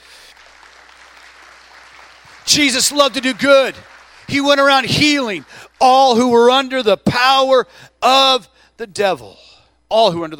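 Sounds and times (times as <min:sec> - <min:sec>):
crowd clapping: 0:00.0 - 0:06.7
speech: 0:02.5 - 0:10.3.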